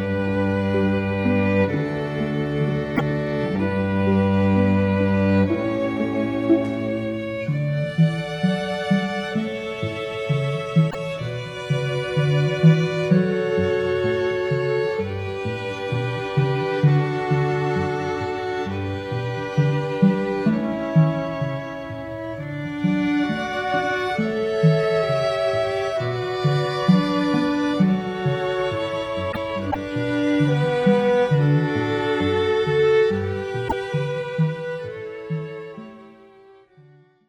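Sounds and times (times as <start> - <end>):
string quartet playing a canon: 0.0 - 37.2.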